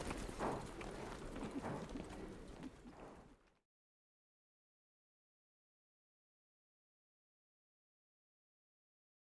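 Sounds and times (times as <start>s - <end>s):
two horses galloping: 0.0s - 3.6s.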